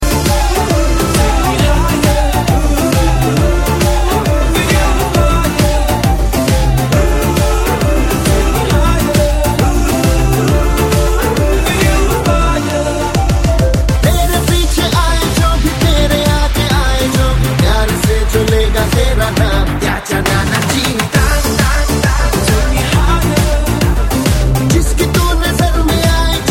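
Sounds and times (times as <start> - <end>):
remix music: 0.0 - 26.4.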